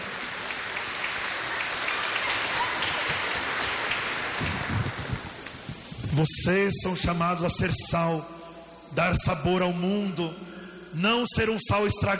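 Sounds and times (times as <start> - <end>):
round of applause: 0.0 - 6.0
speech: 6.2 - 12.1.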